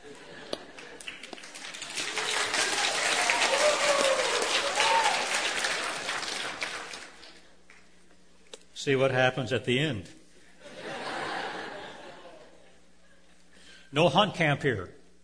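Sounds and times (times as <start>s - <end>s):
laughter: 0.0s - 1.3s, 10.6s - 13.4s
audience clapping: 0.0s - 8.0s
speech: 8.8s - 10.2s, 14.0s - 15.0s.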